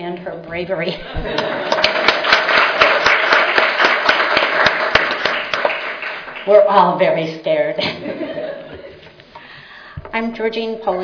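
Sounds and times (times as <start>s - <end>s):
speech: 0.1s - 2.0s, 6.4s - 8.5s, 10.1s - 11.0s
laughter: 1.0s - 2.8s, 7.8s - 9.2s
audience applause: 1.3s - 6.7s.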